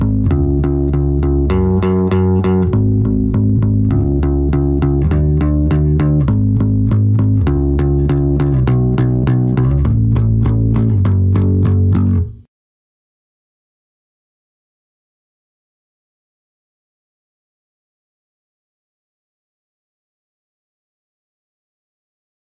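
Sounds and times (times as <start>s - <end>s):
rhythm: 0.0s - 12.4s.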